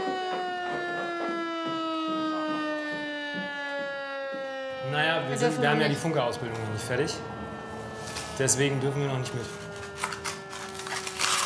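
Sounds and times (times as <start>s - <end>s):
faint irregular knocking or clatter: 0.0s - 4.7s
civil defense siren test alarm at noon: 0.0s - 11.4s
speech: 4.9s - 7.4s, 8.4s - 9.6s.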